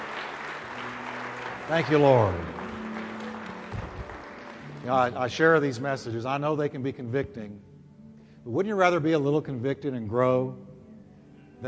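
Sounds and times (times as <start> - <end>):
audience applauding: 0.0 - 5.8
speech: 1.7 - 2.6, 4.8 - 7.7, 8.4 - 10.7.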